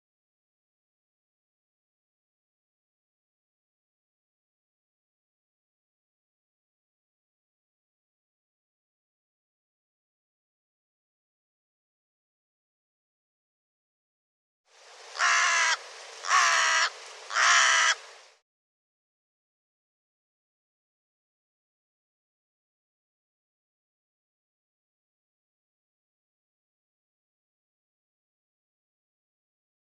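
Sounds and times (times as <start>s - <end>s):
harsh bird caws: 15.2s - 18.1s.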